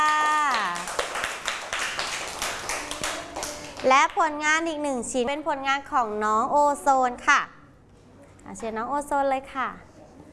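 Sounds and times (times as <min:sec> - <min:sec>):
children clapping hands: 0:00.0 - 0:04.2
speech: 0:03.8 - 0:07.5, 0:08.5 - 0:09.9.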